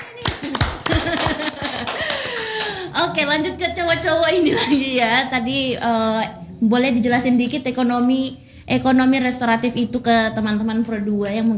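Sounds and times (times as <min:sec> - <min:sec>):
audience clapping: 0:00.0 - 0:03.0
laughter: 0:00.0 - 0:05.4
speech: 0:03.2 - 0:11.5.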